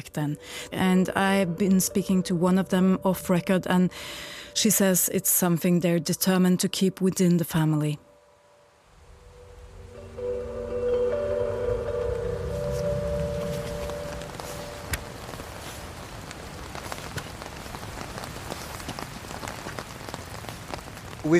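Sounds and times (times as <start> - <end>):
speech: 0.0 - 8.1
heavy rain outdoors: 0.4 - 5.4, 8.6 - 21.3
wind outdoors: 6.6 - 21.3.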